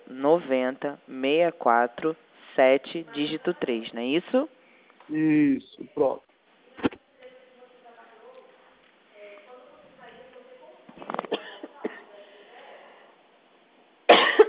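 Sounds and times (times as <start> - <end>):
speech: 0.2 - 6.3
quiet talk: 4.5 - 13.4
choking coughs: 11.1 - 12.0, 14.1 - 14.4.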